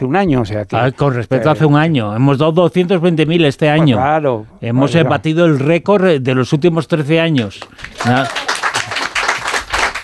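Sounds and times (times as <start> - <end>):
speech: 0.0 - 8.4
spontaneous applause from a live audience of radio listeners: 7.7 - 10.0.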